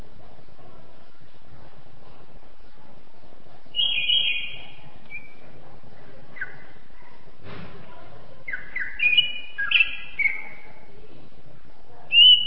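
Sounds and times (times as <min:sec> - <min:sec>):
champion Greater green leafbird singing: 0:03.8 - 0:05.4, 0:08.5 - 0:10.7, 0:12.1 - 0:12.4.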